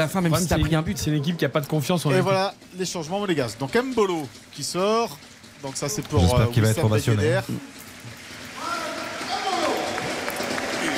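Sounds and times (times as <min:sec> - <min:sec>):
speech: 0:00.0 - 0:08.2
stadium crowd applauding at a Monaco versus Lyon football match: 0:04.1 - 0:10.9.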